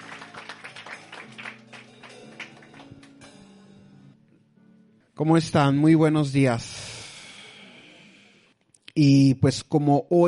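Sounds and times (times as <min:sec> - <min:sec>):
audience applauding: 0:00.0 - 0:03.3
speech: 0:05.2 - 0:06.9, 0:09.0 - 0:10.2.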